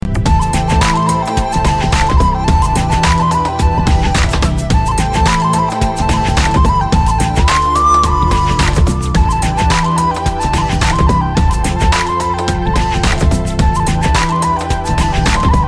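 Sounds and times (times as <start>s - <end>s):
fast flute music: 0.2s - 15.6s.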